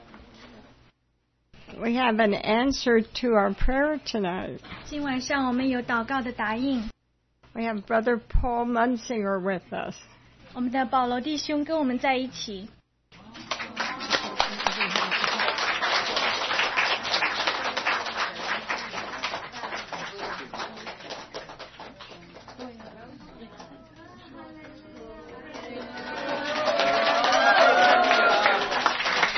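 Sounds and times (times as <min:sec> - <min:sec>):
speech: 0:01.6 - 0:06.9, 0:07.6 - 0:12.8
audience applause: 0:13.4 - 0:22.9, 0:25.4 - 0:29.3.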